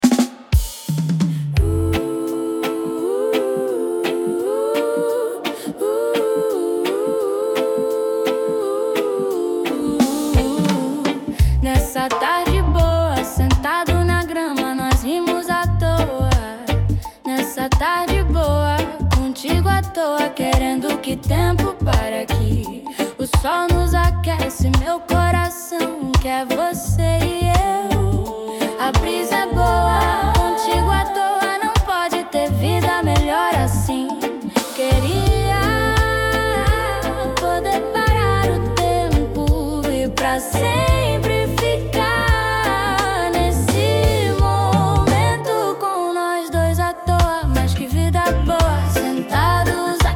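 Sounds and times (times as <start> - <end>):
reggae music: 0.0 - 50.1.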